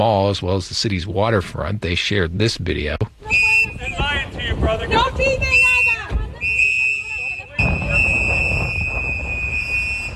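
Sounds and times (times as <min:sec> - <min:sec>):
speech: 0:00.0 - 0:05.8
activists blowing whistles: 0:03.2 - 0:04.2, 0:05.4 - 0:10.1
crowd noise: 0:03.2 - 0:10.1.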